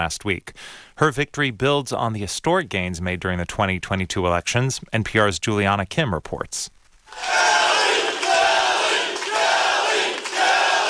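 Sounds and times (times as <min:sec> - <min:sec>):
speech: 0:00.0 - 0:07.6
crowd chanting a candidate's name: 0:07.1 - 0:10.8.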